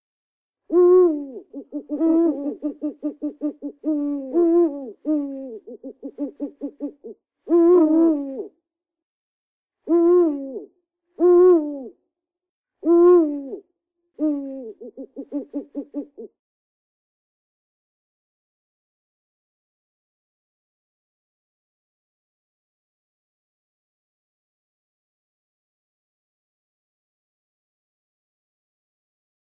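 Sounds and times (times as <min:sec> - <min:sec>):
owl hooting: 0:00.7 - 0:08.5, 0:09.9 - 0:11.9, 0:12.8 - 0:13.6, 0:14.2 - 0:16.3.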